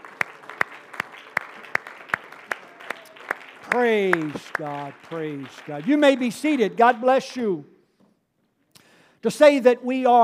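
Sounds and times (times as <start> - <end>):
audience clapping hands: 0.0 - 7.4
speech: 3.7 - 7.7, 9.2 - 10.2.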